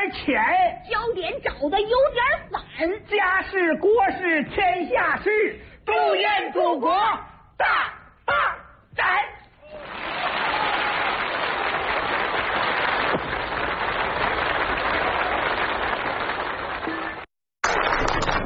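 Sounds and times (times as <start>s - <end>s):
speech: 0.1s - 9.4s
audience applause: 9.7s - 18.4s.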